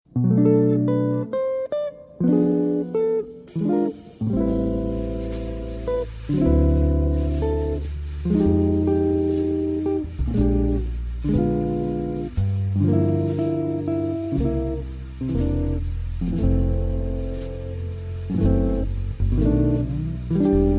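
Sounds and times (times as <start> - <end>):
jazz lullaby: 0.2 - 20.7.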